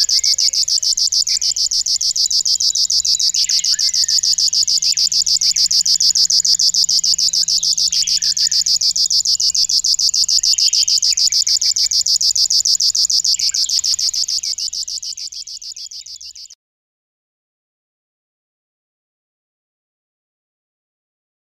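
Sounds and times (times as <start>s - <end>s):
grasshopper warbler singing: 0.0s - 16.6s.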